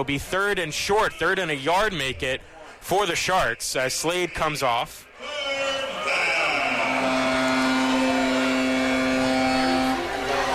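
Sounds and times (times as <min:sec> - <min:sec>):
speech: 0:00.0 - 0:05.4
stadium horn signaling third down: 0:05.6 - 0:10.5.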